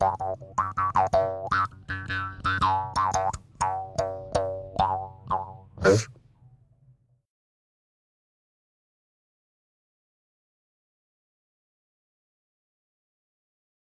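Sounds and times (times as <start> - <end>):
animal music: 0.0 - 6.9.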